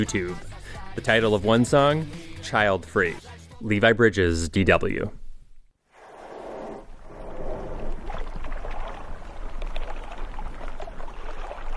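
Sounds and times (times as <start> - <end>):
speech: 0.0 - 5.2
ocean waves: 6.0 - 11.7.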